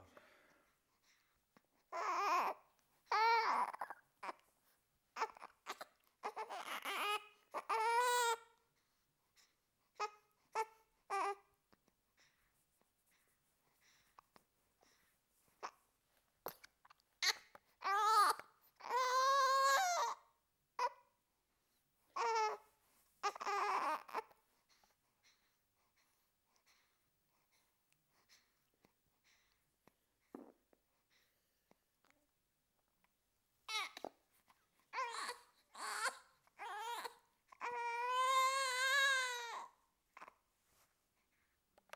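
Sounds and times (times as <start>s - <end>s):
premature baby crying: 1.9s - 4.4s, 5.2s - 8.4s, 17.2s - 20.2s, 22.2s - 22.6s, 23.2s - 24.3s, 34.9s - 40.3s.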